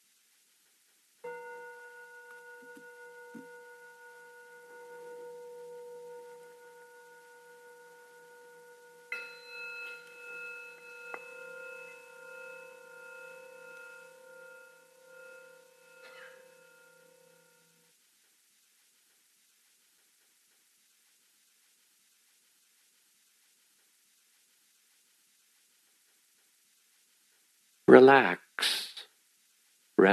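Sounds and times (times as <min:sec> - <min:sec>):
bells ringing: 0:01.2 - 0:17.8
speech: 0:27.9 - 0:28.8.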